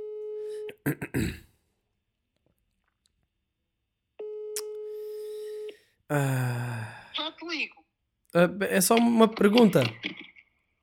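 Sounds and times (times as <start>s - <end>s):
telephone ringback tone while calling a mother: 0.0s - 0.7s, 4.2s - 5.8s
speech: 0.8s - 1.4s, 8.4s - 10.2s.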